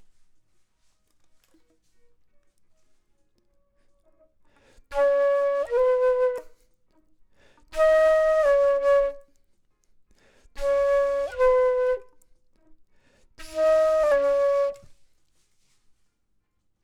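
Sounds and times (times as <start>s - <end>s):
flute: 1.9s - 9.5s, 10.5s - 12.8s, 13.4s - 15.2s.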